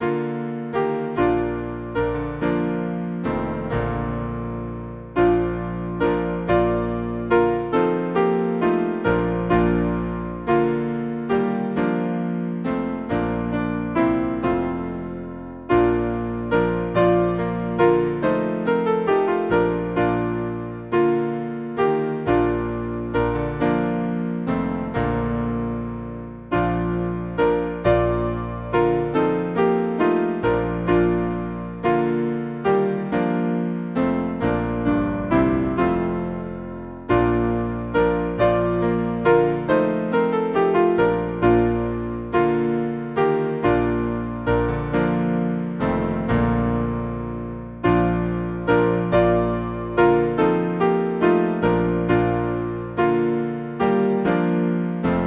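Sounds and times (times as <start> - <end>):
hymn on piano: 0.0 - 55.2.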